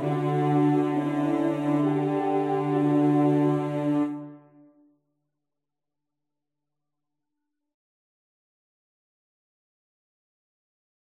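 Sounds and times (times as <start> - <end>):
cello: 0.0 - 4.7.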